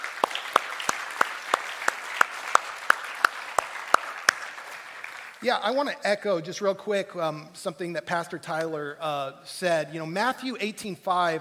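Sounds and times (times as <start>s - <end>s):
sharp evenly spaced hand claps: 0.0s - 5.4s
roomful of people applauding: 0.0s - 5.9s
speech: 5.4s - 11.3s.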